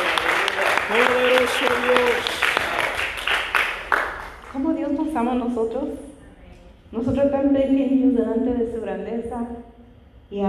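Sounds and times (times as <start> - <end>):
audience applause: 0.0 - 4.6
speech: 0.9 - 2.4, 4.6 - 6.1, 6.9 - 9.7, 10.3 - 10.4.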